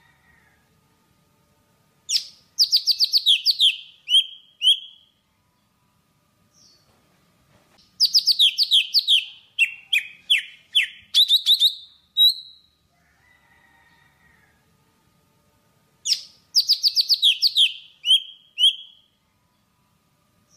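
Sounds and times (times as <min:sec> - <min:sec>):
Java sparrow singing: 0:02.1 - 0:05.1, 0:08.0 - 0:12.7, 0:16.0 - 0:19.1.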